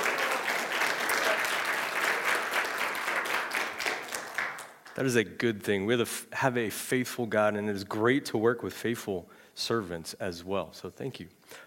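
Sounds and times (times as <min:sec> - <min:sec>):
church congregation applauding a teacher's last day: 0:00.0 - 0:05.2
speech: 0:05.0 - 0:11.6.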